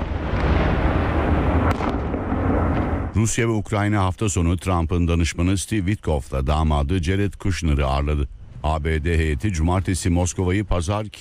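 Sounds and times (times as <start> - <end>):
explosions during a bombing raid on Kyiv: 0.0 - 3.3
speech: 3.2 - 11.1.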